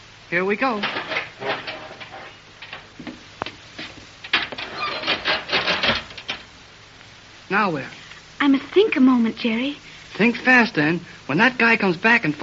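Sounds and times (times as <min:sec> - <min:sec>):
speech: 0:00.3 - 0:01.7, 0:07.5 - 0:12.4
elevator door being yanked open: 0:00.8 - 0:02.9, 0:04.3 - 0:06.5.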